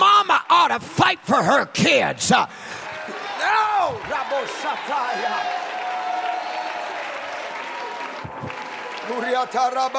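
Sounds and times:
speech: 0.7s - 2.8s, 3.4s - 5.6s, 9.1s - 9.9s
audience clapping hands: 2.7s - 9.9s.

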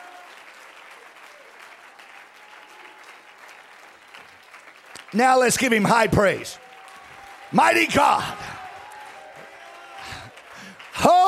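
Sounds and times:
audience clapping hands: 0.0s - 11.2s
speech: 5.1s - 6.6s, 7.5s - 8.5s.

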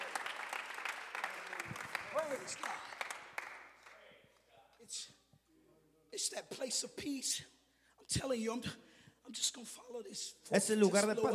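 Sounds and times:
audience clapping hands: 0.0s - 4.2s
speech: 2.3s - 3.0s, 4.9s - 5.2s, 6.1s - 11.3s.

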